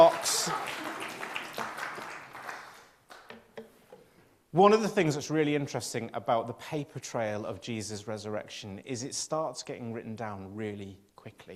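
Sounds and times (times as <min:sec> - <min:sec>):
audience applause: 0:00.0 - 0:03.3
speech: 0:04.6 - 0:11.5.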